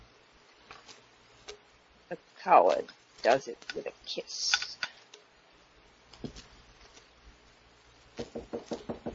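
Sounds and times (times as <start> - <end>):
speech: 2.1 - 4.6
knocking on a door: 8.2 - 9.1.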